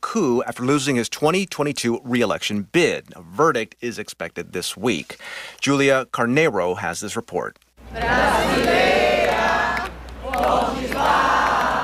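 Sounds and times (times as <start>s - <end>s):
speech: 0.1s - 9.2s
crowd chanting a national hymn on São Paulo's Paulista Avenue: 7.9s - 11.8s.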